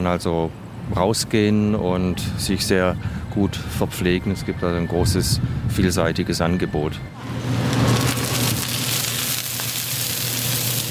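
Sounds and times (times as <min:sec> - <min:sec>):
speech: 0:00.0 - 0:07.6
oyster omelette sizzling and spattering on griddle: 0:07.4 - 0:10.8.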